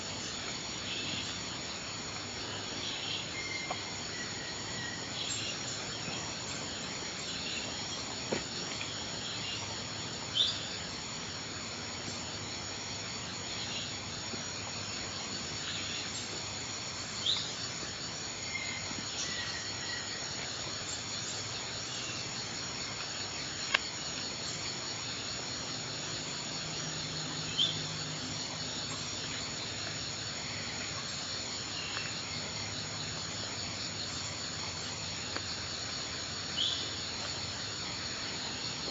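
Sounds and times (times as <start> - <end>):
rain forest ambience: 0.0 - 38.8.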